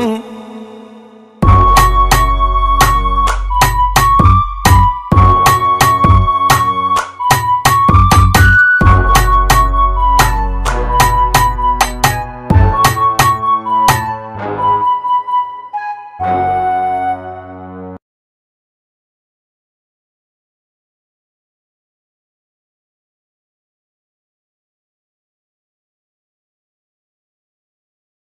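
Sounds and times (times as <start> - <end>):
Brazilian music: 0.0 - 18.0.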